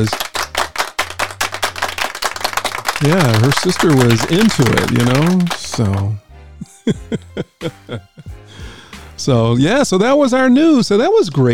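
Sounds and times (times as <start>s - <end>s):
speech: 0.0s - 0.2s, 3.0s - 6.2s, 6.8s - 8.4s, 9.2s - 11.5s
round of applause: 0.0s - 6.2s
laughter: 3.0s - 8.9s.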